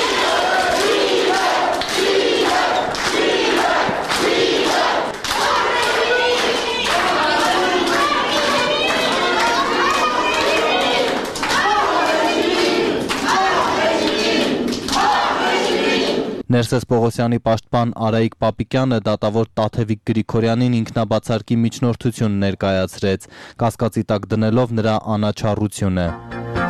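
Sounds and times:
supporters applauding defendants in a courtroom: 0:00.0 - 0:16.4
supporters shouting in a courtroom: 0:00.0 - 0:16.4
speech: 0:16.6 - 0:26.5.

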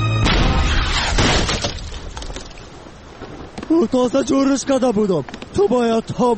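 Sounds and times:
cannonball crashing into a ship: 0:00.2 - 0:02.2
splintering, shattering debris: 0:00.2 - 0:03.7
speech: 0:03.7 - 0:06.3.

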